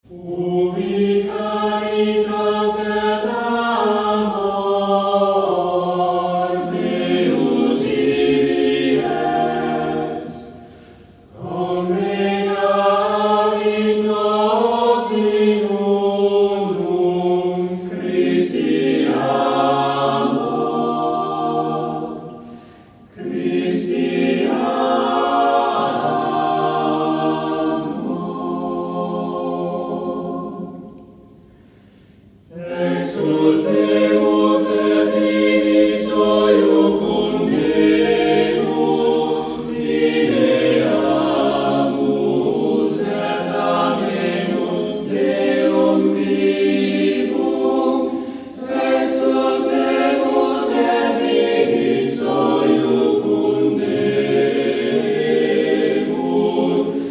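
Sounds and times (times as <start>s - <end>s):
choral chant: 0.0s - 57.0s.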